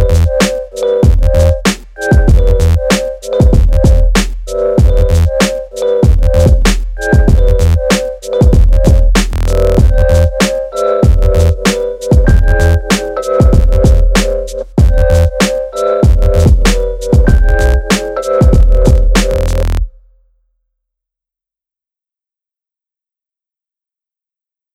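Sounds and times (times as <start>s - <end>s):
instrumental music: 0.0s - 20.1s.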